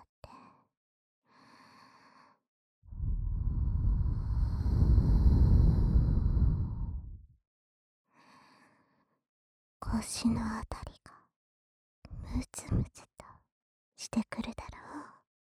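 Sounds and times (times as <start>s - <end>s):
warm breathing close to the ear: 2.9s - 7.2s
speech: 10.0s - 10.8s, 14.0s - 14.7s.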